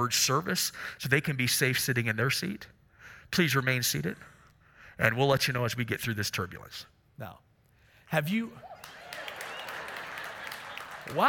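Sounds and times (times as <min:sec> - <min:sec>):
speech: 0:00.0 - 0:04.3, 0:05.0 - 0:07.5, 0:08.1 - 0:09.0, 0:11.1 - 0:11.2
audience applauding at Park Avenue: 0:08.6 - 0:11.2.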